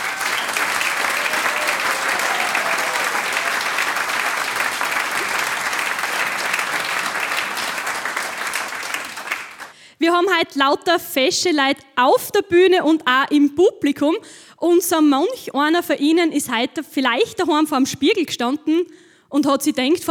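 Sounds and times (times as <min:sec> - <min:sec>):
audience applause: 0:00.0 - 0:09.7
speech: 0:10.2 - 0:20.0.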